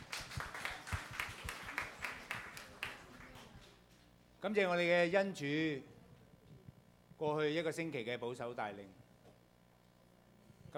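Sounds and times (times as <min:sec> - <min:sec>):
audience applause: 0:00.0 - 0:03.6
speech: 0:04.4 - 0:05.9, 0:07.2 - 0:09.0.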